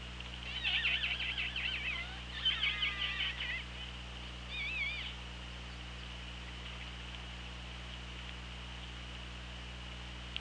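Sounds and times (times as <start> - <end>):
steady low hum: 0.0 - 10.3
killer whale calls: 0.4 - 3.8, 4.5 - 5.2.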